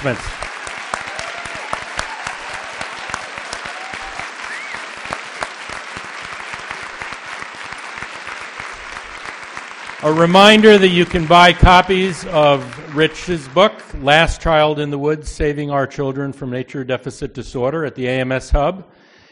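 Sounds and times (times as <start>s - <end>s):
speech: 0.0s - 0.4s, 10.0s - 19.0s
audience applause: 0.0s - 14.1s.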